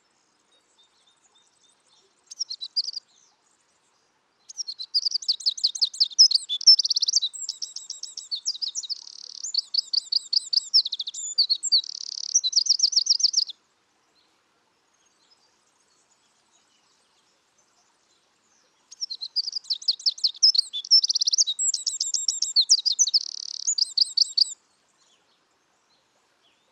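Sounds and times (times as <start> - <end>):
Eurasian wren singing: 0.7 - 3.1, 4.5 - 13.6, 18.6 - 25.3.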